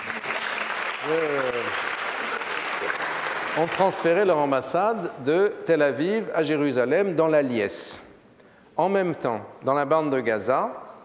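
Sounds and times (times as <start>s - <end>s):
audience applause: 0.0s - 4.3s
speech: 1.0s - 1.9s, 3.6s - 8.1s, 8.8s - 10.8s.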